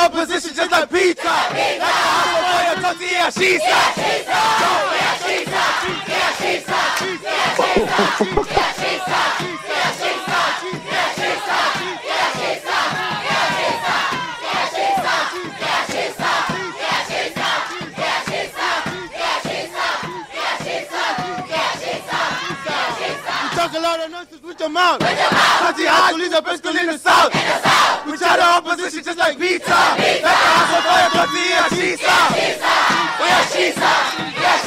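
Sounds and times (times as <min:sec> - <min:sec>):
speech: 0:00.1 - 0:02.0, 0:02.9 - 0:13.0, 0:23.8 - 0:34.6
crowd of students chanting a war cry: 0:01.0 - 0:02.8, 0:03.4 - 0:23.7, 0:25.0 - 0:26.1, 0:27.1 - 0:28.4, 0:29.2 - 0:34.6
laughter: 0:07.6 - 0:09.0.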